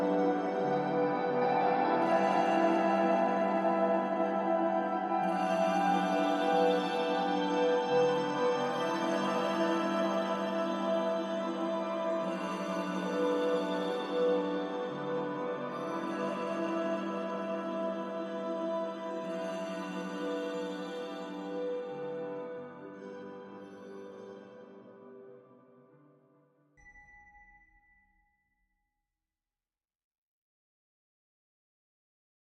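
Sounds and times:
ambient music: 0:00.0 - 0:25.1.

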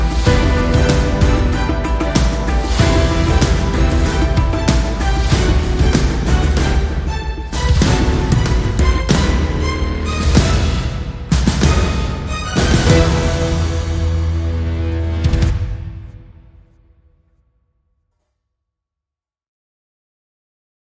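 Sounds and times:
strings: 0:00.0 - 0:16.7.

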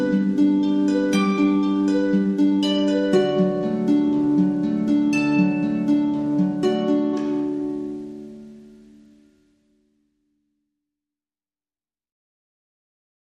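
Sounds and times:
harp: 0:00.0 - 0:09.6.

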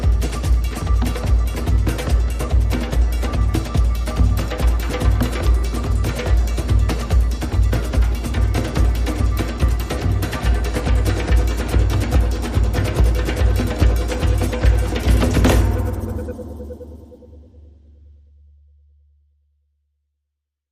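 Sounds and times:
percussion: 0:00.0 - 0:18.9
electronic pulses: 0:14.5 - 0:18.1.

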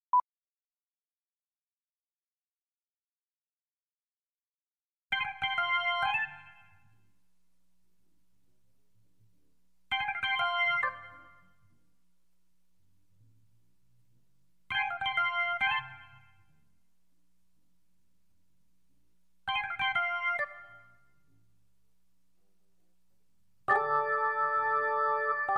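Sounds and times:
solo organ: 0:05.1 - 0:07.0, 0:09.9 - 0:11.8, 0:14.7 - 0:16.6, 0:19.4 - 0:21.4, 0:23.6 - 0:25.5.

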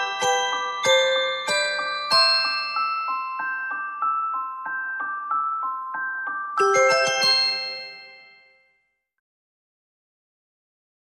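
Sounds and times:
carillon melody: 0:00.0 - 0:08.8.

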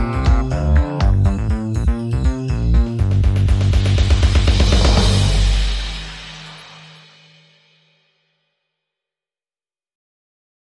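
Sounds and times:
bass: 0:00.0 - 0:07.0
drums: 0:00.0 - 0:08.1.

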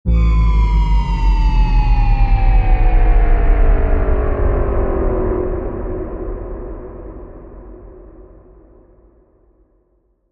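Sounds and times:
subtle sci-fi drop: 0:00.1 - 0:06.6.

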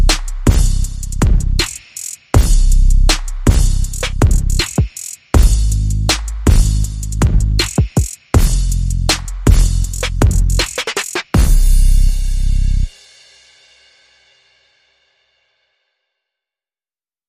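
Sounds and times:
bass: 0:00.0 - 0:01.7, 0:02.4 - 0:04.7, 0:05.4 - 0:07.8, 0:08.4 - 0:10.8, 0:11.4 - 0:12.9
drums: 0:00.0 - 0:15.0.

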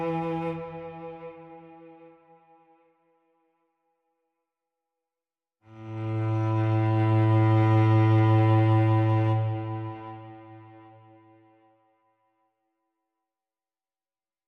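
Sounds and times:
solo cello playing: 0:00.0 - 0:02.1, 0:05.7 - 0:11.2.

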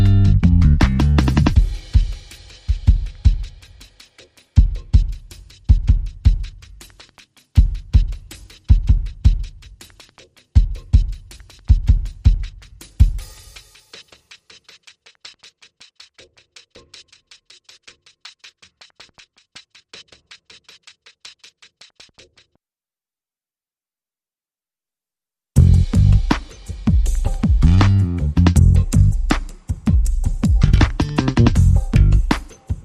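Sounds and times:
bass guitar: 0:00.0 - 0:01.6, 0:25.6 - 0:26.3, 0:27.4 - 0:29.3, 0:30.5 - 0:32.3
drums: 0:00.0 - 0:22.5, 0:25.6 - 0:32.8.

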